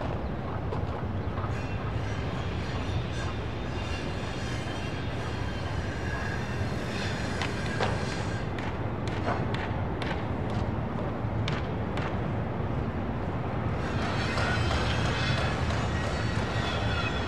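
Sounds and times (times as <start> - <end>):
distant construction site in a city: 0.0 - 17.2.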